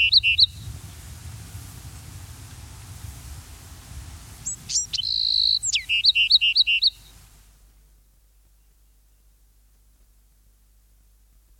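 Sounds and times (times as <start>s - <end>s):
Bewick's wren songbird: 0.0s - 0.7s, 4.4s - 7.2s, 8.2s - 9.4s.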